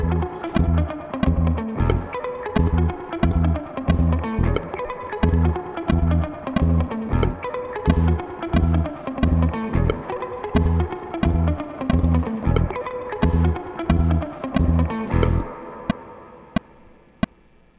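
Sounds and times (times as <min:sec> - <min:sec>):
metronome click: 0:00.0 - 0:17.5.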